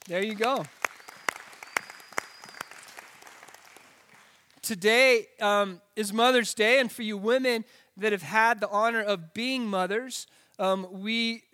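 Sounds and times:
light audience applause: 0:00.0 - 0:04.5
speech: 0:00.1 - 0:00.8, 0:04.7 - 0:11.5.

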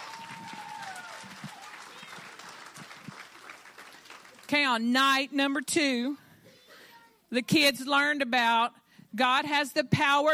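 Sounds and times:
voices whooping and calling out: 0:00.0 - 0:02.4
audience hand clapping: 0:00.0 - 0:04.6
speech: 0:04.5 - 0:06.2, 0:07.3 - 0:10.3.

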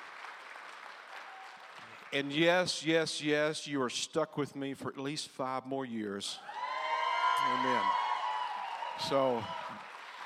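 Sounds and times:
church audience applause: 0:00.0 - 0:02.2, 0:06.5 - 0:10.2
speech: 0:02.1 - 0:06.6, 0:07.4 - 0:08.0, 0:09.0 - 0:09.9.

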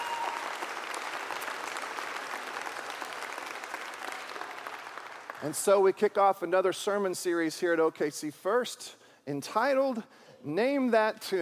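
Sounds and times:
audience applause: 0:00.0 - 0:05.6
speech: 0:05.4 - 0:11.3.

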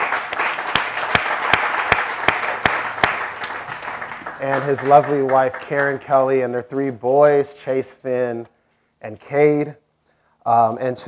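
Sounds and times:
audience applause: 0:00.0 - 0:06.0
speech: 0:04.4 - 0:09.8, 0:10.4 - 0:11.0.

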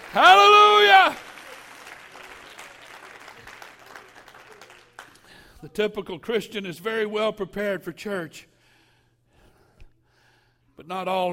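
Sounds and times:
audience clapping hands: 0:00.0 - 0:05.5
speech: 0:00.1 - 0:01.2, 0:05.6 - 0:08.5, 0:10.9 - 0:11.3.

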